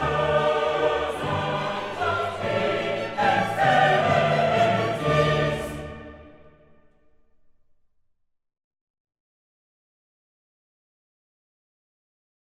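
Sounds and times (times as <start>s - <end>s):
requiem music: 0.0s - 7.2s.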